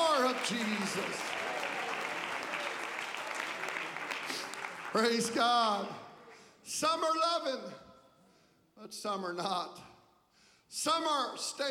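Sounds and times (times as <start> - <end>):
crowd clapping hands: 0.0 - 6.5
speech: 0.4 - 1.6, 4.9 - 6.0, 6.7 - 7.8, 8.8 - 9.9, 10.7 - 11.6.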